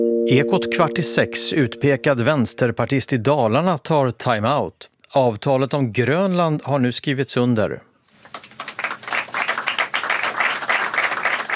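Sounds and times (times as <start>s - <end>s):
speech: 0.0s - 8.4s
applause at signing ceremony in UN headquarters: 8.2s - 11.5s.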